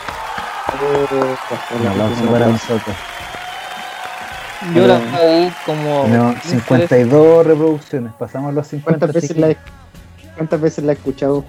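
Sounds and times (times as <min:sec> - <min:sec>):
clapping: 0:00.0 - 0:08.0
voices calling out and cheering: 0:00.0 - 0:09.6
speech: 0:00.8 - 0:03.2, 0:04.6 - 0:09.8, 0:10.4 - 0:11.4.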